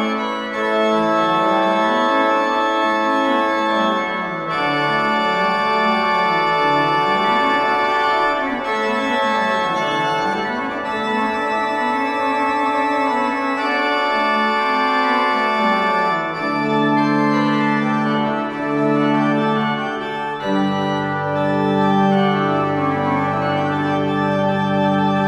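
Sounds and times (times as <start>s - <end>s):
organ tuning: 0.0s - 25.2s.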